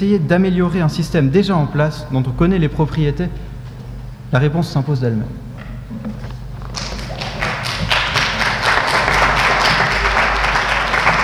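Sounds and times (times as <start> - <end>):
speech: 0.0 - 3.5, 4.3 - 5.4
crowd applauding after a speech: 6.6 - 11.2.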